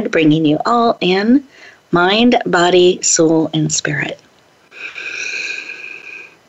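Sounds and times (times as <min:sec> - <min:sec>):
speech: 0:00.1 - 0:04.2
deep breath: 0:01.5 - 0:01.9, 0:04.7 - 0:06.4.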